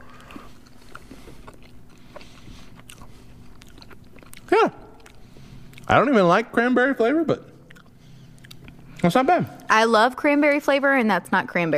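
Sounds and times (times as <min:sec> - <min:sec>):
person biting and chewing candy corn: 0:00.0 - 0:06.1, 0:07.5 - 0:09.7
speech: 0:05.9 - 0:07.5, 0:09.0 - 0:11.7.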